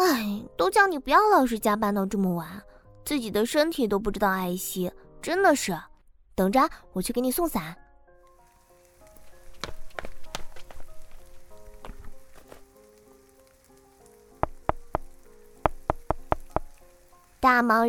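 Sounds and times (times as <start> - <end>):
speech: 0.5 - 7.8, 17.4 - 17.8
heavy rain: 11.2 - 17.4.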